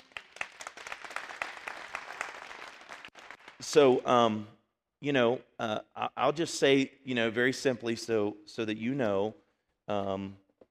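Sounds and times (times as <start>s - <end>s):
audience hand clapping: 0.0s - 4.0s
speech: 3.6s - 10.4s.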